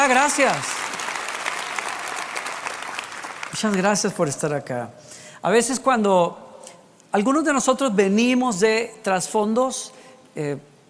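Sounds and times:
speech: 0.0 - 0.8, 3.6 - 6.4, 7.1 - 10.7
audience applause: 0.0 - 3.8.

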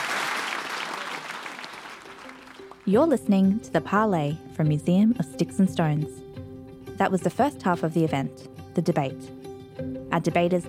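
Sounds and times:
audience applause: 0.0 - 2.8
speech: 2.9 - 6.2, 7.0 - 9.4, 10.2 - 10.6.

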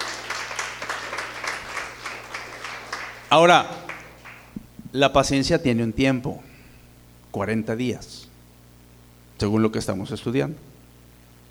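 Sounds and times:
audience applause: 0.0 - 4.6
speech: 3.3 - 3.8, 4.9 - 6.5, 7.3 - 8.2, 9.4 - 10.7.

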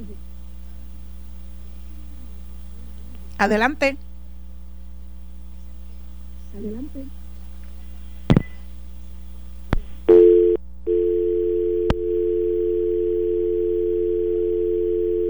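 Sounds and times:
speech: 3.4 - 4.1, 6.6 - 7.2
telephone dial tone after dropped call: 10.1 - 15.2.

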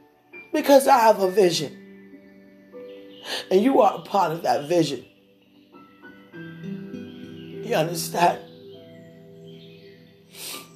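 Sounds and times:
speech: 0.5 - 1.8, 3.4 - 5.1, 7.7 - 8.5
person sniffing: 3.2 - 3.5, 10.3 - 10.7.

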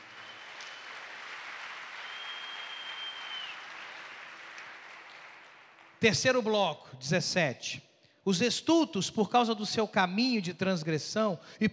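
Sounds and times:
applause: 0.0 - 6.6
speech: 6.0 - 11.7.

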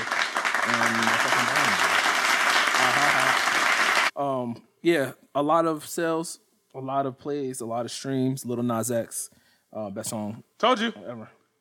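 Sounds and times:
group clapping applause: 0.0 - 4.1
speech: 0.7 - 1.9, 4.5 - 11.4.

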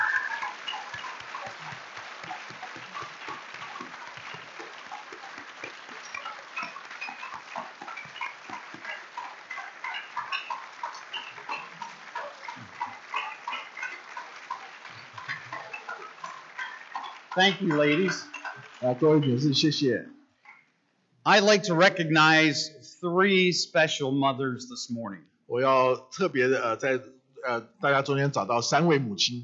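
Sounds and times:
audience applause: 0.0 - 20.0
speech: 17.4 - 20.1, 21.2 - 29.4.

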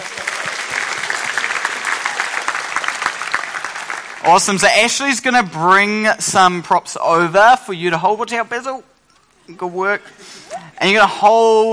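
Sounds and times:
audience clapping: 0.0 - 5.0
speech: 4.2 - 8.9, 9.5 - 11.7.

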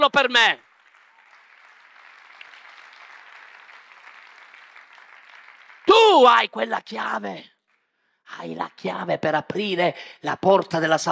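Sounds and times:
speech: 0.0 - 0.6, 5.9 - 7.5, 8.3 - 11.0
audience applause: 0.2 - 6.2.

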